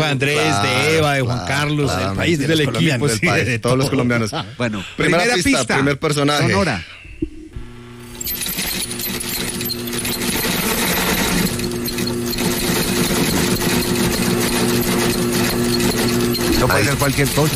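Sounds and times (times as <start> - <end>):
speech: 0.0 - 7.0, 16.7 - 17.5
sewing machine running: 8.0 - 17.5.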